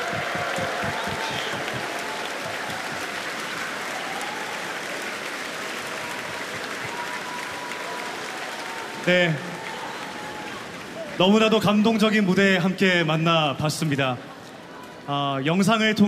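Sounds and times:
standing ovation applause from audience: 0.0 - 11.8
speech: 9.0 - 9.5, 11.2 - 14.3, 15.1 - 16.0.

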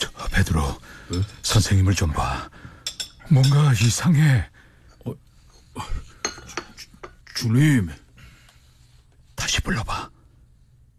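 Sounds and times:
speech: 0.4 - 2.6, 3.3 - 5.2, 5.8 - 6.1, 7.4 - 8.0, 9.7 - 10.1
plates and dishes clinking at a Passover meal: 1.0 - 1.7, 2.7 - 3.8, 6.1 - 7.3.

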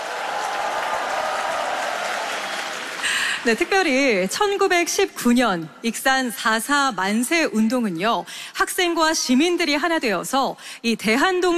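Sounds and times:
audience applause: 0.0 - 4.0
speech: 3.4 - 11.5.

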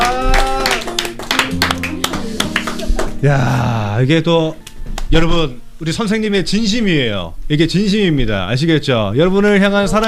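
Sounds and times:
audience clapping: 0.0 - 3.4
sustained tonal voice or music: 2.1 - 4.5
speech: 3.2 - 10.0.

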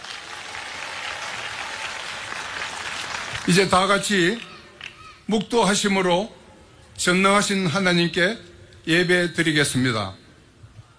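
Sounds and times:
large crowd applauding: 0.0 - 5.1
speech: 3.4 - 4.5, 5.3 - 6.4, 7.0 - 10.2.

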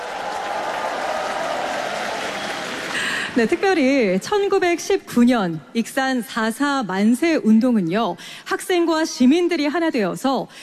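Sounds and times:
audience applause: 0.0 - 3.8
speech: 3.4 - 10.6.

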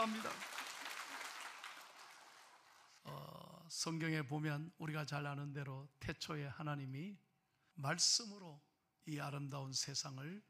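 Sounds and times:
speech: 0.0 - 0.5, 3.0 - 7.2, 7.8 - 10.4
audience applause: 0.0 - 3.0.

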